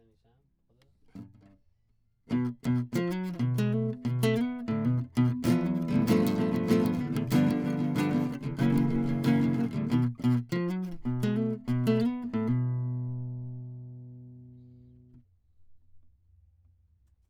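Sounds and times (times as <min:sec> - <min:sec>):
classical guitar: 0:02.3 - 0:15.2.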